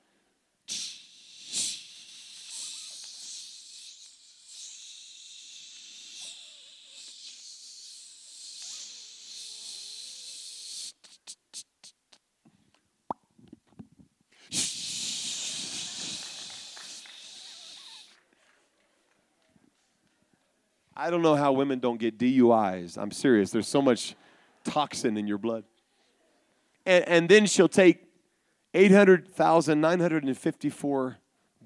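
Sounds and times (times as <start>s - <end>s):
hairspray can spraying: 14.5s - 18.1s
speech: 21.0s - 25.7s, 26.9s - 28.0s, 28.7s - 31.6s.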